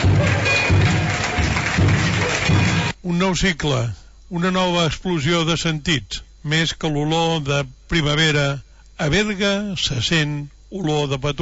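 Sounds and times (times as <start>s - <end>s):
deep steady festival tabal drum beat: 0.0s - 3.0s
speech: 3.2s - 11.4s.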